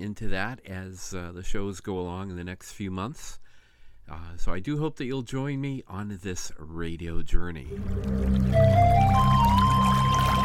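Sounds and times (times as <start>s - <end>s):
speech: 0.0s - 3.4s, 4.1s - 9.5s
water pouring steadily into a container: 7.7s - 10.4s.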